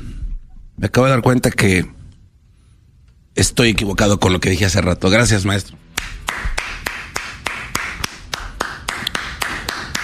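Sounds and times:
speech: 0.8 - 2.0, 3.4 - 5.8
hands clapping: 6.0 - 10.0.

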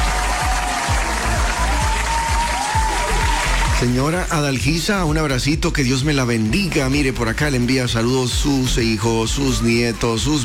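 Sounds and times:
audience applause: 0.0 - 4.4
speech: 3.8 - 10.4.

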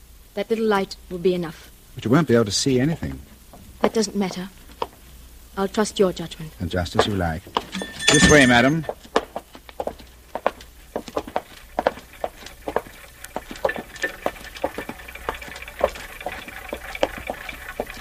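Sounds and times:
speech: 0.4 - 4.6, 5.6 - 9.0
many clocks ticking in a room: 7.0 - 8.9, 11.8 - 18.0.

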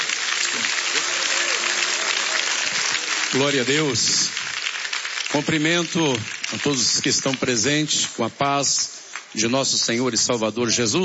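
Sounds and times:
faint voices and cheers: 0.0 - 3.5
crowd applause: 0.0 - 9.5
speech: 3.3 - 4.4, 5.3 - 11.0.

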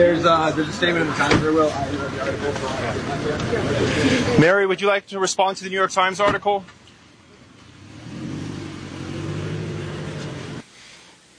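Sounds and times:
speech: 0.0 - 6.8
car engine revving and pulling away: 7.5 - 10.6.

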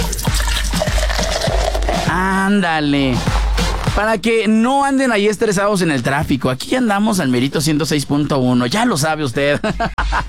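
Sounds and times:
soda pouring into a glass: 0.1 - 2.0
speech: 2.5 - 3.3, 4.0 - 10.2
laughter: 9.5 - 10.2.

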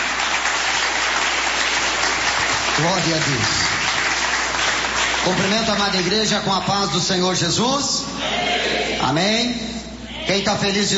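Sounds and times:
church congregation clapping to welcome the pastor: 0.0 - 6.9
speech: 2.8 - 3.8, 5.2 - 9.7, 10.3 - 10.9.

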